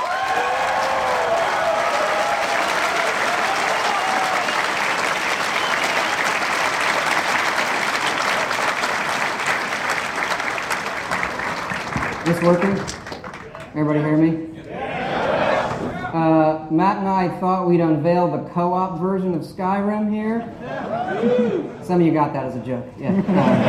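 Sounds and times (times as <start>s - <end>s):
audience applause welcoming a game designer at a video game industry event: 0.0s - 14.0s
speech: 12.3s - 13.0s, 13.8s - 14.5s, 16.1s - 23.6s
laughter: 14.6s - 16.1s, 20.5s - 21.8s, 23.0s - 23.6s.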